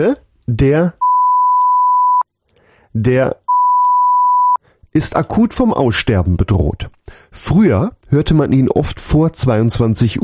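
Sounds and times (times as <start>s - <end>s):
speech: 0.0s - 1.0s, 2.9s - 3.4s, 5.0s - 10.2s
electronic beep: 1.0s - 2.2s, 3.5s - 4.6s.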